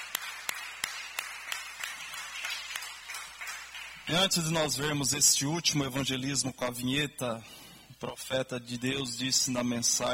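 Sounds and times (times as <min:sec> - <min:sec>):
group clapping in a steady brisk rhythm: 0:00.0 - 0:04.6
speech: 0:04.1 - 0:10.1.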